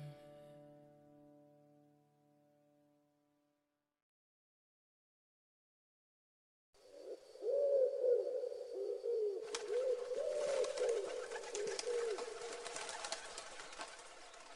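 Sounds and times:
pigeon cooing: 7.0 - 13.7.

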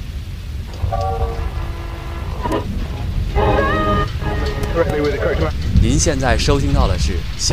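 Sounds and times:
rain falling: 0.0 - 7.5
short wavering tonal calls: 0.7 - 5.7
speech: 4.8 - 7.5.

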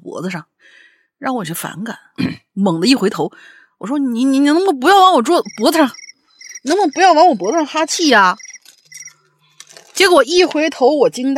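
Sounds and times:
speech: 0.2 - 6.0, 6.6 - 8.4, 10.0 - 11.3
cricket chirping alarm clock ringtone: 5.3 - 9.3.

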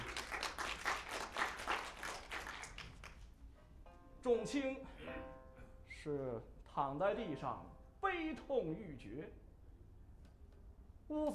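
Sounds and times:
audience applause: 0.0 - 3.2
speech: 4.3 - 5.4, 6.0 - 9.4, 11.1 - 11.3.

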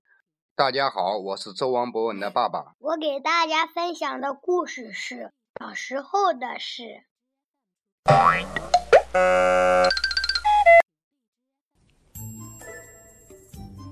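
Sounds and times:
speech: 0.6 - 7.1, 8.1 - 10.0
electronic alarm clock ringing: 9.2 - 10.8.

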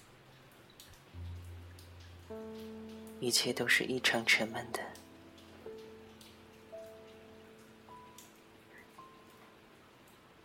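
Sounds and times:
gentle humming tones: 0.0 - 10.4
light rain pattering: 0.0 - 10.4
speech: 2.3 - 5.0.

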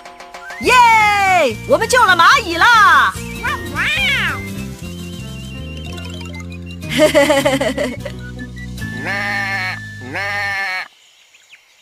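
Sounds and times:
speech: 0.6 - 4.1, 7.0 - 8.2
laughter: 6.9 - 8.2
goat stuck in a thorn bush bleating: 9.0 - 10.9.

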